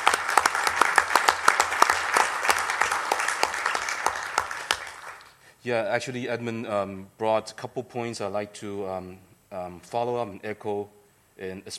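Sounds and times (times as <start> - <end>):
audience applause in a meeting room: 0.0 - 5.4
speech: 5.6 - 11.7.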